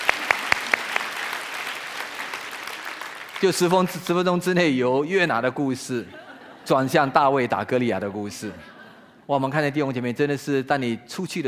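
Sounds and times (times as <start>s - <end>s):
audience applause: 0.0s - 3.7s
speech: 3.4s - 8.7s, 9.3s - 11.4s
laughter: 6.0s - 7.1s.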